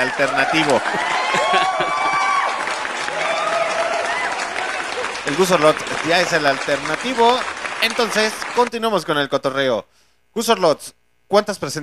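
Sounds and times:
applause: 0.0 - 8.8
speech: 0.2 - 2.1, 5.3 - 11.8
laughter: 0.5 - 3.4, 4.8 - 8.4.

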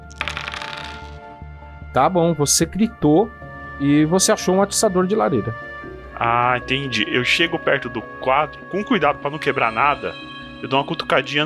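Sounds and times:
two dice being rolled: 0.0 - 1.2
speech: 2.0 - 11.4.

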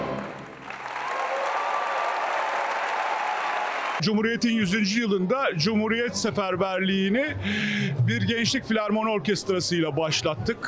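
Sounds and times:
concert hall standing ovation applause: 0.2 - 4.0
speech: 4.0 - 10.6.

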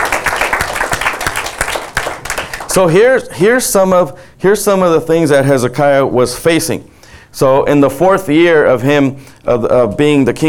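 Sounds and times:
audience applause: 0.0 - 2.9
speech: 2.8 - 10.4.

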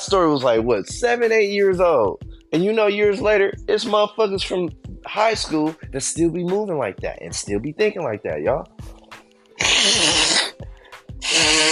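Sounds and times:
speech: 0.1 - 9.0
person blowing nose: 9.6 - 11.7.

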